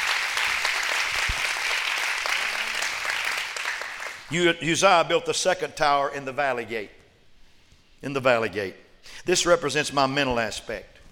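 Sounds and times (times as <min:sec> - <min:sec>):
large crowd clapping hands: 0:00.0 - 0:04.3
speech: 0:04.3 - 0:07.0, 0:08.0 - 0:10.9.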